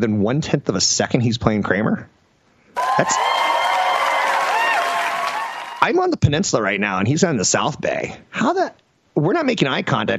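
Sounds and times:
speech: 0.0 - 2.2, 3.0 - 3.4, 5.8 - 10.1
audience clapping: 2.8 - 5.9.

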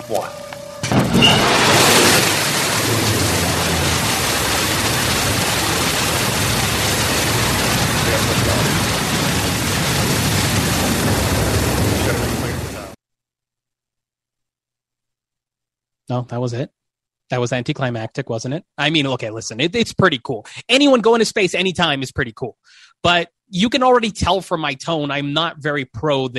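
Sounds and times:
rocket launch engine roar at liftoff: 0.0 - 13.0
speech: 0.1 - 0.4, 16.1 - 26.3.

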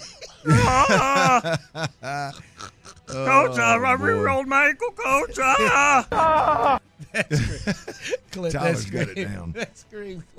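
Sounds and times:
laughter: 0.0 - 2.5, 5.5 - 9.7
strained vocal cries and groans: 0.4 - 4.4, 5.0 - 6.8
speech: 0.4 - 10.3
voice mimicking a pained scream: 0.5 - 1.5, 5.3 - 6.8.

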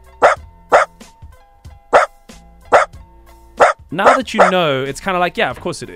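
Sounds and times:
Dachshund barking: 0.2 - 0.9, 1.9 - 2.1, 2.7 - 2.9, 3.6 - 4.6
speech: 3.9 - 5.9.

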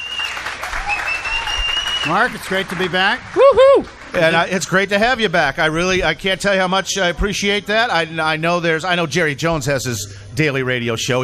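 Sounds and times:
faint high whistle-like tone: 0.0 - 2.2
audience applause: 0.0 - 4.9
speech: 2.0 - 11.2.

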